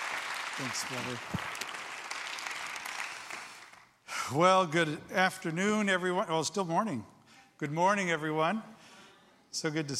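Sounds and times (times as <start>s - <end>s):
church congregation clapping to welcome a pastor: 0.0s - 4.0s
speech: 0.6s - 1.6s, 4.3s - 8.8s, 9.5s - 9.9s.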